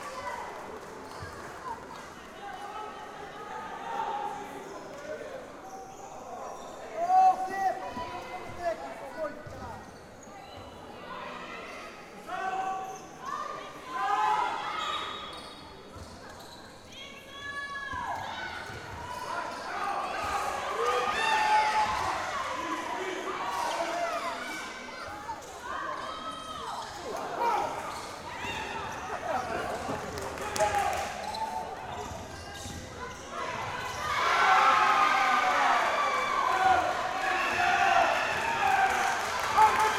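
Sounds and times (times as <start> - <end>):
women's league basketball match ambience: 0.0 - 39.9.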